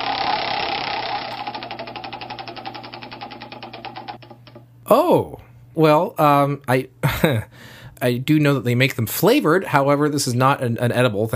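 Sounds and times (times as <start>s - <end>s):
Wheel of History prize wheel spinning and clicking: 0.0s - 4.6s
speech: 4.9s - 11.3s.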